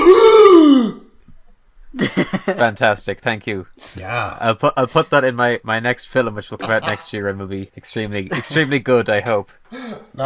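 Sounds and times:
shocked gasp: 0.0 - 1.1, 9.7 - 10.1
speech: 2.5 - 10.2.

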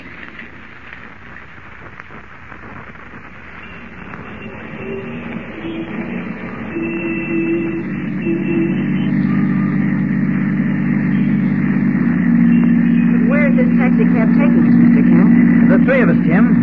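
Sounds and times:
taxi engine running with a steady low droning hum: 3.5 - 16.6
voice: 13.0 - 16.6.

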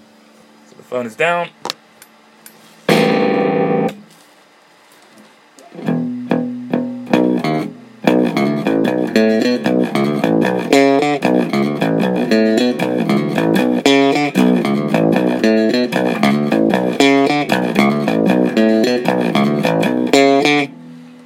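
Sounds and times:
speech: 0.8 - 1.7
bass guitar line played through amp: 2.9 - 4.0, 5.7 - 21.2.

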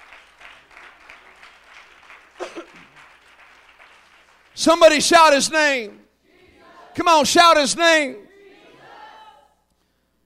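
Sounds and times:
audience hand clapping: 0.0 - 4.7
speech: 4.6 - 6.0, 7.0 - 8.3.

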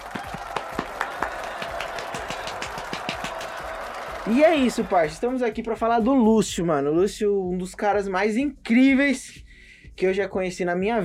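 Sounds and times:
few people applauding: 0.0 - 5.6
speech: 4.3 - 9.4, 10.0 - 11.0.

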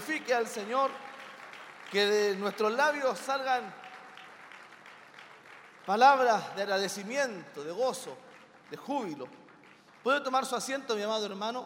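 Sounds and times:
audience applauding: 0.0 - 11.2
speech: 0.2 - 1.1, 1.9 - 3.8, 5.8 - 9.4, 10.0 - 11.6.

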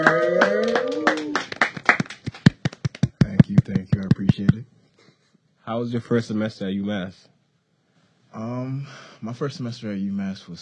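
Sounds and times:
small group clapping to welcome a guest: 0.0 - 4.6
speech: 5.7 - 7.3, 8.4 - 10.6.

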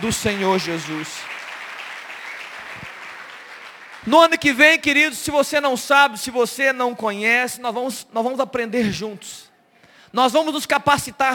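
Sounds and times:
speech: 0.0 - 1.4, 4.0 - 9.5, 10.1 - 11.3
audience applause: 0.0 - 4.1.

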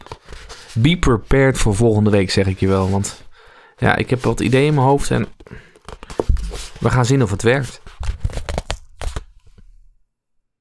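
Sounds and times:
speech: 0.8 - 3.2, 3.8 - 5.7, 6.8 - 7.9
cracking sound: 8.0 - 9.3.

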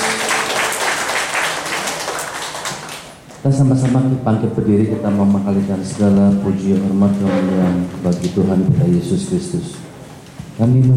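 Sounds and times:
audience applause: 0.0 - 3.3
speech: 3.4 - 9.8, 10.6 - 10.9.

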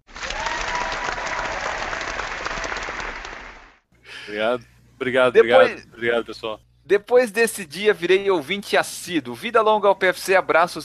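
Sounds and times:
crowd clapping: 0.0 - 3.8
speech: 4.3 - 10.8.

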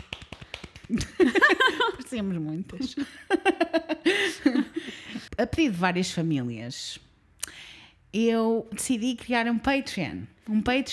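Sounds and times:
hands clapping into the microphone: 0.0 - 1.4
speech: 0.9 - 1.5, 2.1 - 10.9
laughter: 0.9 - 5.3.

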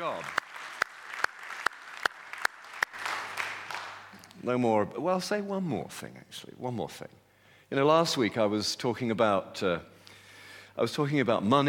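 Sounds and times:
audience applauding: 0.0 - 4.3
speech: 4.4 - 9.9, 10.8 - 11.6.

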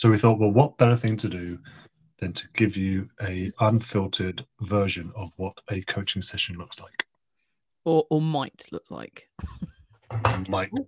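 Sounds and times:
speech: 0.0 - 7.1, 7.8 - 10.8
plate knocking on table: 10.1 - 10.5.

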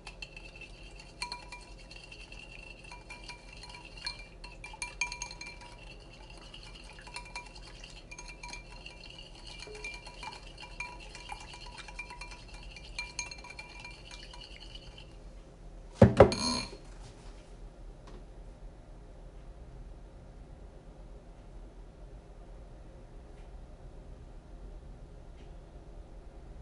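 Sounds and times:
utensils and bowls clinking making banana bread: 0.0 - 15.2, 16.3 - 16.8
low steady hum: 0.0 - 26.6
ringing tone: 16.3 - 16.8.

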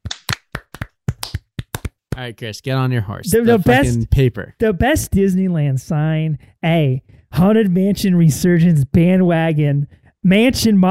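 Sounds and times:
hands clapping in celebration: 0.0 - 2.3
speech: 2.2 - 10.8.

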